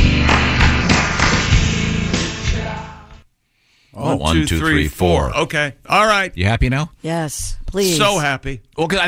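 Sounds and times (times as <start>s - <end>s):
hand claps in slow motion: 0.2s - 1.7s
speech: 4.1s - 9.0s.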